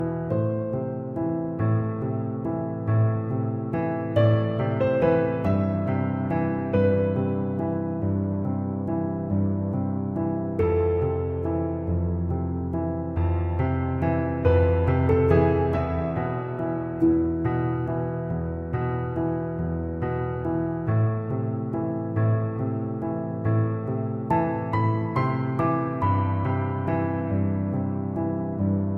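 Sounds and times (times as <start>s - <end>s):
depressing piano music: 0.0s - 28.9s.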